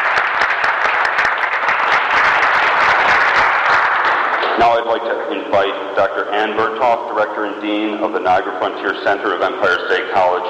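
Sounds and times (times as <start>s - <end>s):
audience applause: 0.0s - 5.7s
speech: 4.6s - 10.4s.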